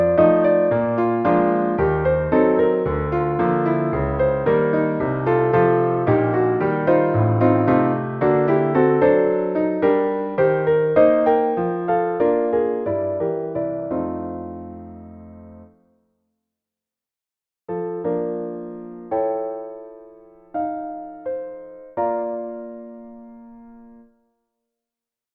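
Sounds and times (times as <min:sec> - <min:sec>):
ragtime-like piano solo in B flat major: 0:00.0 - 0:15.7, 0:17.7 - 0:23.6.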